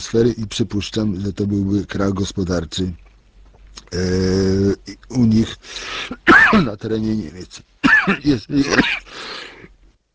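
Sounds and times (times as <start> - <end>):
speech: 0.0 - 3.0, 3.9 - 9.2
person clearing throat: 6.1 - 6.8, 7.8 - 9.2
raspy exhale: 9.1 - 9.7.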